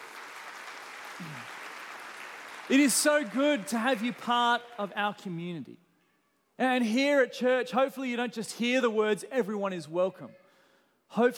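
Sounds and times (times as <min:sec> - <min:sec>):
audience applause: 0:00.0 - 0:04.6
speech: 0:02.7 - 0:05.8, 0:06.6 - 0:10.4, 0:11.1 - 0:11.3.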